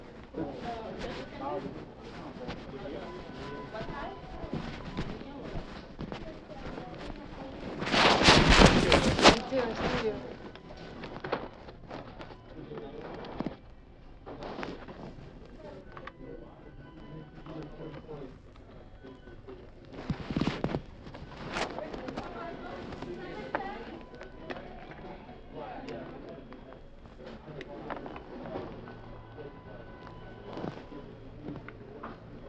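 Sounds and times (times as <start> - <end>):
chatter inside a NYC McDonald's: 0.0 - 32.4.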